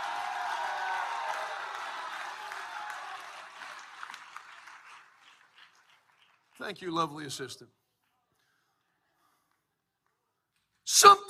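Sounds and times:
audience shouting and cheering: 0:00.0 - 0:03.4
audience clapping: 0:00.0 - 0:08.2
speech: 0:06.6 - 0:07.8.

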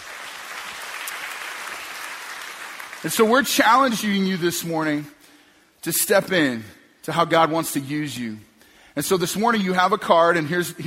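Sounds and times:
audience applause: 0:00.0 - 0:03.2
speech: 0:03.0 - 0:05.2, 0:05.8 - 0:10.8.

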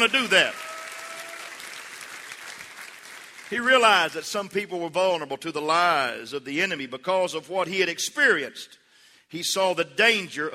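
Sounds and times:
speech: 0:00.0 - 0:00.6, 0:03.5 - 0:10.5
audience clapping: 0:00.0 - 0:04.2.

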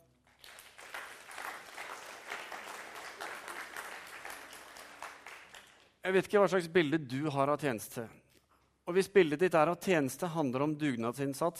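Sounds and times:
audience applause: 0:00.3 - 0:06.0
speech: 0:06.0 - 0:08.2, 0:08.9 - 0:11.5.

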